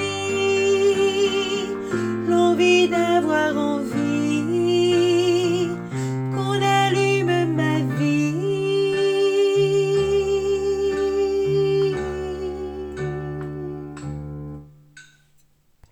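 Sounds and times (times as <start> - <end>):
alto voice singing a refrain: 0.0 - 14.0.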